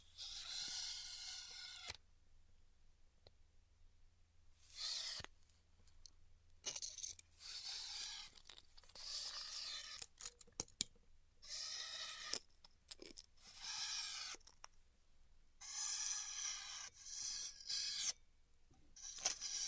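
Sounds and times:
Styrofoam being cut with a hot tool: 0:00.1 - 0:02.0, 0:04.6 - 0:05.3, 0:06.8 - 0:10.1, 0:11.5 - 0:12.5, 0:13.4 - 0:14.4, 0:15.6 - 0:18.2, 0:19.0 - 0:19.6.

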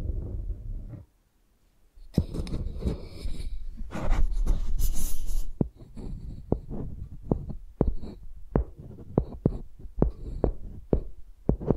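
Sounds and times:
microphones scraped like pencils: 0:02.1 - 0:11.7
sharp taps and thumps: 0:05.6 - 0:11.7.

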